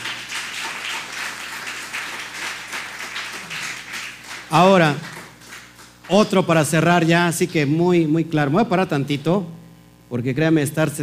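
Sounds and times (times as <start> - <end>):
audience applause: 0.0 - 6.3
speech: 4.5 - 5.1, 6.1 - 11.0.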